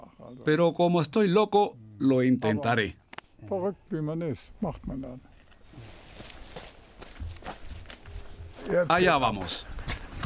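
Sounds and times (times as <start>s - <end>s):
speech: 0.3s - 6.0s, 8.7s - 9.7s
footsteps of an 81-year-old trotting up stairs two at a time: 6.2s - 10.2s.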